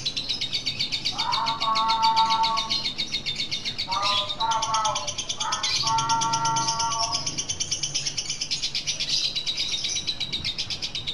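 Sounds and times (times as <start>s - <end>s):
Lutino lovebird giving the ngekek chattering call: 0.0s - 11.1s.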